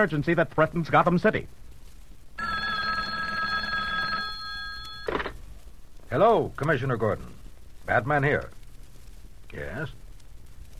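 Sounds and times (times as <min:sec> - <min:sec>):
speech: 0:00.0 - 0:01.6, 0:06.1 - 0:08.6, 0:09.5 - 0:10.0
hotline telephone bell ringing: 0:02.4 - 0:05.3
telephone receiver lifted clatter: 0:02.6 - 0:05.4.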